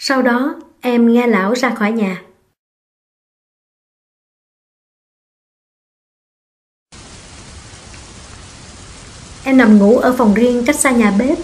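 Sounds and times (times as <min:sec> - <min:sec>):
speech: 0:00.0 - 0:02.3, 0:09.5 - 0:11.4
heavy rain on a roof: 0:06.9 - 0:11.4.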